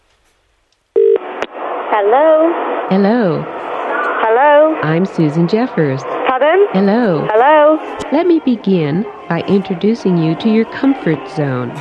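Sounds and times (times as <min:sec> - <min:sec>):
telephone ringing tone of an outgoing call to an amusement arcade in Scarborough: 0:01.0 - 0:01.2
speech: 0:02.0 - 0:03.6, 0:04.2 - 0:11.7.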